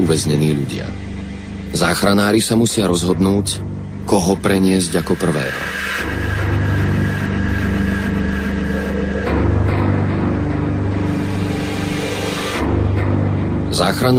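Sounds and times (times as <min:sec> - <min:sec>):
speech: 0:00.0 - 0:01.1, 0:01.7 - 0:05.8, 0:13.8 - 0:14.1
rescue helicopter engine: 0:05.6 - 0:12.6.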